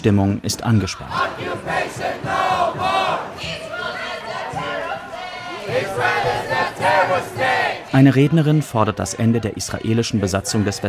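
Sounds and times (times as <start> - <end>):
speech: 0.0 - 3.6, 5.7 - 10.8
demonstrators chanting in chorus: 0.7 - 10.8.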